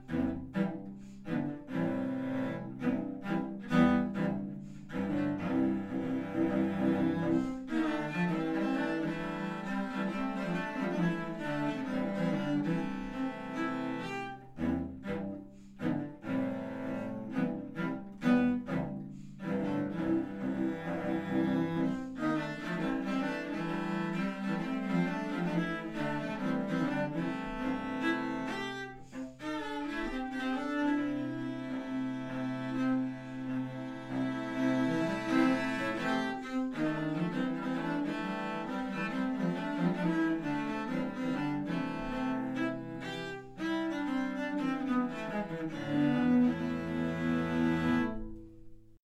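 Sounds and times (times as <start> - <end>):
cello ensemble: 0.0 - 49.0.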